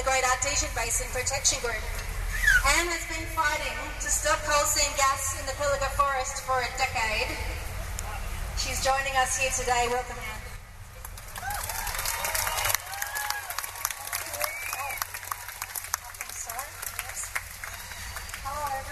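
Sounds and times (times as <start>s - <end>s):
speech: 0.2s - 2.0s, 2.6s - 7.6s, 8.6s - 10.3s
crowd applauding: 11.0s - 18.8s
whoops and cheers: 11.3s - 15.8s.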